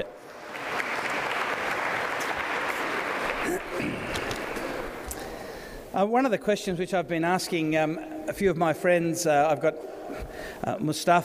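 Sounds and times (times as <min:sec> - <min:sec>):
audience applause at a talk on Christianity: 0:00.0 - 0:05.7
speech: 0:06.0 - 0:11.2.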